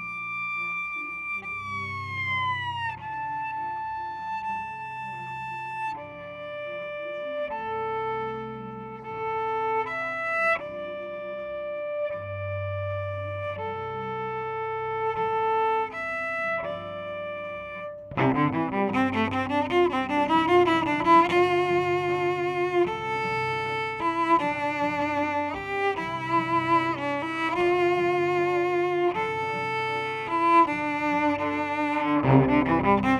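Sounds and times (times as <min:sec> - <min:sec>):
cello: 0:00.0 - 0:33.1.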